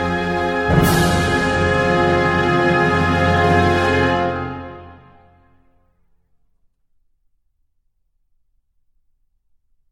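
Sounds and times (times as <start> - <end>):
instrumental national anthem: 0.0 - 5.4.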